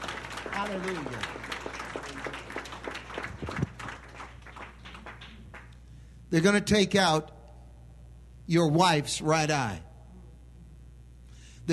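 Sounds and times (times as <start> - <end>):
audience clapping: 0.0 - 5.9
speech: 0.6 - 2.5, 6.3 - 7.3, 8.5 - 9.9.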